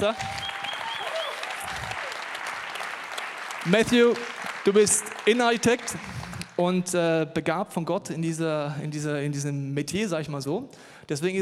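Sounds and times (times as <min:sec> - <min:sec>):
speech: 0:00.0 - 0:00.4, 0:03.6 - 0:11.4
audience applause: 0:00.0 - 0:06.6.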